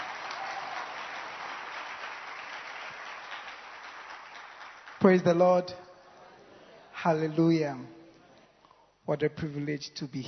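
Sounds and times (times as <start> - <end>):
church congregation in Koforidua clapping: 0.0 - 6.1
speech: 5.0 - 5.9, 7.0 - 8.0, 9.1 - 10.2.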